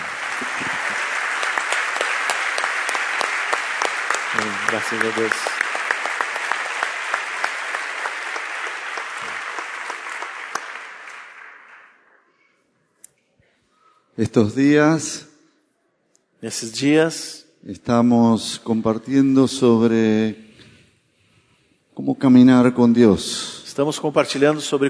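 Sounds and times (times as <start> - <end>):
audience applauding: 0.0 - 12.2
speech: 4.7 - 5.5, 14.2 - 15.3, 16.4 - 20.4, 22.0 - 24.8.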